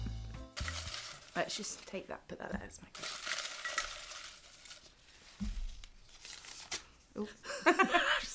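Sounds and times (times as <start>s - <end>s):
sheet of paper being torn up: 0.5s - 2.0s, 2.9s - 6.9s
speech: 1.5s - 3.2s, 7.2s - 8.1s.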